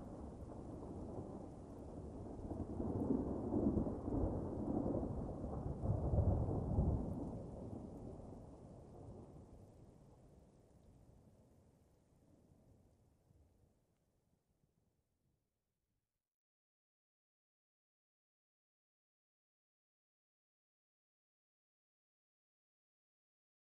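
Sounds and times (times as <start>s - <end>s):
medium thunder: 0.0s - 9.3s.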